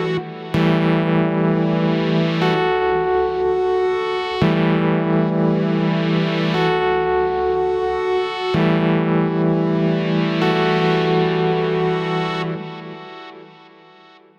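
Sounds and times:
retro synth chords: 0:00.0 - 0:13.7.

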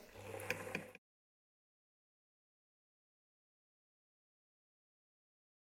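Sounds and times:
Singer sewing machine: 0:00.1 - 0:01.0.

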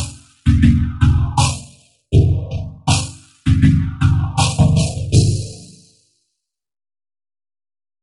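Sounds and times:
vocoder beat: 0:00.0 - 0:05.7.

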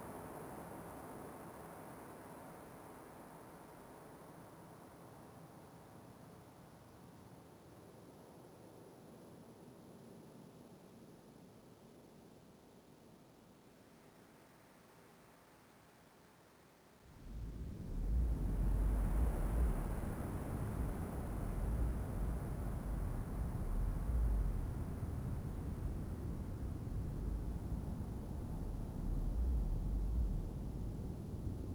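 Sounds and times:
ambience: 0:17.1 - 0:31.7.

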